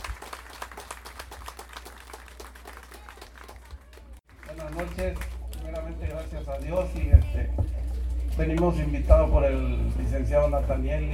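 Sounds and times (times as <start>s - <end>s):
audience applause: 0.0s - 7.1s
speech: 5.0s - 5.3s, 6.0s - 7.6s, 8.4s - 11.1s.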